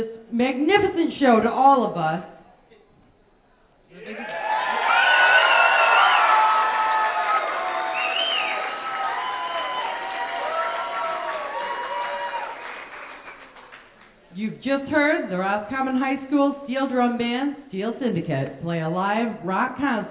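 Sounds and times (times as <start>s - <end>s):
speech: 0.0s - 2.4s, 14.4s - 20.0s
audience applause: 4.0s - 14.1s.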